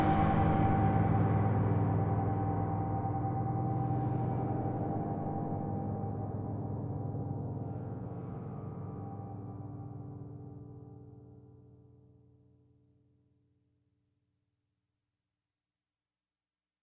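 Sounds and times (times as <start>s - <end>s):
dark ambience: 0.0s - 11.5s.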